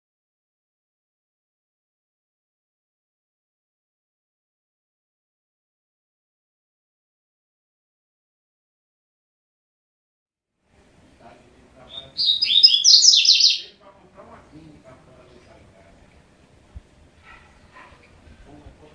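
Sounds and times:
double-collared seedeater singing fast bright chattering notes: 0:11.9 - 0:13.7.

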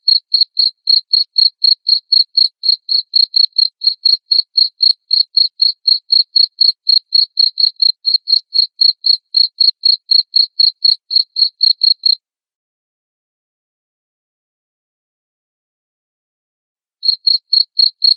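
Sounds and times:
cricket chirping: 0:00.1 - 0:12.2, 0:17.0 - 0:18.1.

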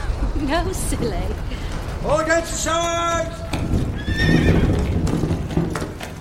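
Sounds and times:
horse hooves clopping in a mine passage: 0:00.0 - 0:06.2
line of mine tubs rolling: 0:00.0 - 0:06.2
speech: 0:00.4 - 0:04.7
huge white horse whinny: 0:03.8 - 0:05.1.

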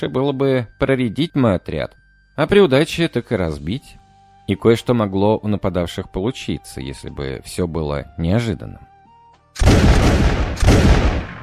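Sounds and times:
speech: 0:00.0 - 0:08.9
gunshots: 0:09.6 - 0:11.4.

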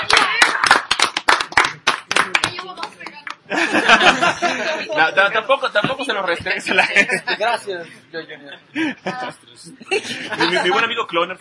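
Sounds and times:
applause, clapping hands: 0:00.0 - 0:03.4
laughter: 0:03.5 - 0:05.4, 0:06.3 - 0:11.0
speech: 0:04.6 - 0:11.3.

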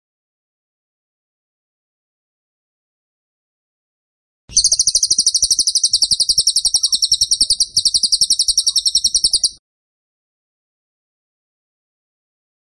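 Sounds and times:
bird chirping rapidly: 0:04.5 - 0:09.6.

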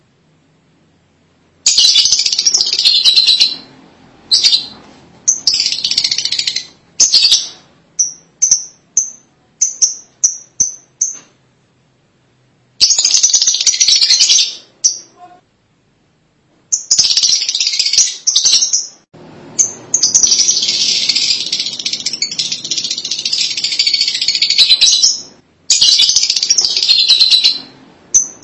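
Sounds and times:
lovebird chatter: 0:01.7 - 0:03.7, 0:04.3 - 0:11.3, 0:12.8 - 0:15.3, 0:16.7 - 0:19.0, 0:19.6 - 0:28.4.

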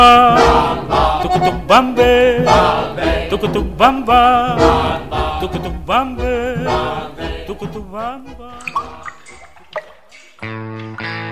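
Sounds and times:
sustained musical tones: 0:00.0 - 0:09.8
speech: 0:01.2 - 0:09.0
water dripping from a leaking tap: 0:08.6 - 0:11.2.

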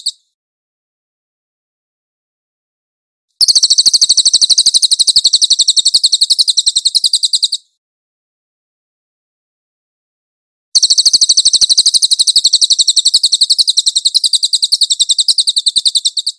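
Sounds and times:
cililin trilling song: 0:03.4 - 0:07.7, 0:10.8 - 0:16.3.

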